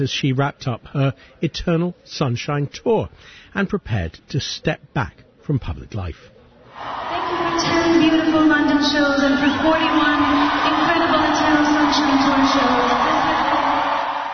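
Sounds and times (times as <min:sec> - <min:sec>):
speech: 0:00.0 - 0:13.2
concert crowd cheering: 0:06.7 - 0:14.3.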